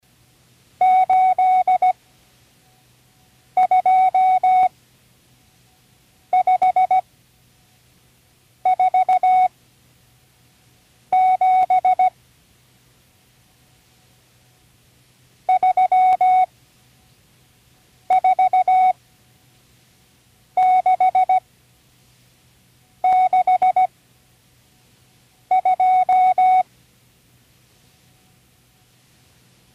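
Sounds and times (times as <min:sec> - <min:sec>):
Morse code signals for numbers: 0:00.8 - 0:02.0, 0:03.6 - 0:04.7, 0:06.3 - 0:07.0, 0:08.7 - 0:09.5, 0:11.1 - 0:12.1, 0:15.5 - 0:16.5, 0:18.1 - 0:19.0, 0:20.6 - 0:21.4, 0:23.0 - 0:23.9, 0:25.5 - 0:26.6.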